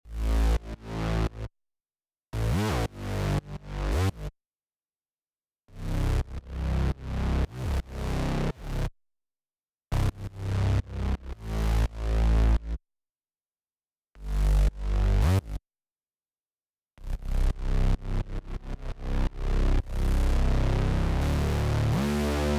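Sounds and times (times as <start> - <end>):
bass: 0.1 - 1.5, 2.4 - 4.3, 5.7 - 8.9, 9.9 - 12.8, 14.2 - 15.6, 17.0 - 22.5.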